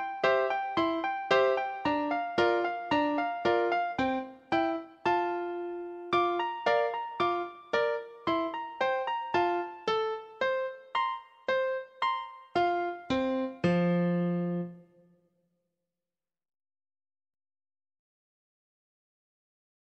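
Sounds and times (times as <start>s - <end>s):
solo piano dance song: 0.0s - 14.8s.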